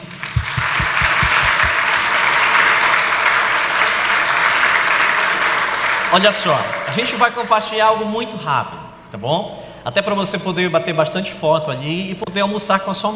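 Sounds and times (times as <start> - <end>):
low thumps: 0.2 - 1.8
audience applause: 0.2 - 6.1
speech: 6.1 - 13.1.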